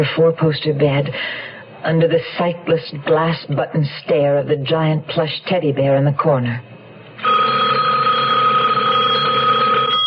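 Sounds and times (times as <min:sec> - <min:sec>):
speech: 0:00.0 - 0:07.4
telephone ringing: 0:07.2 - 0:10.0.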